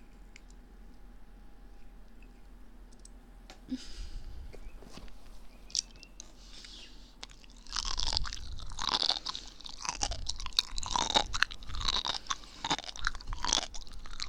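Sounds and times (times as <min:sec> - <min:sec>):
crunchy chewing while eating: 0:05.6 - 0:14.2.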